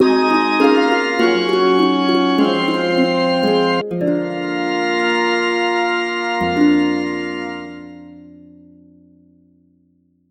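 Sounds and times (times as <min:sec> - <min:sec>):
game over jingle: 0:00.0 - 0:08.2.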